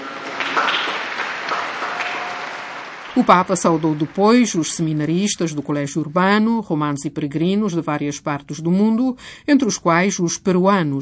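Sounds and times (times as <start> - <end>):
applause for the missionaries: 0.0 - 5.0
speech: 3.2 - 10.9.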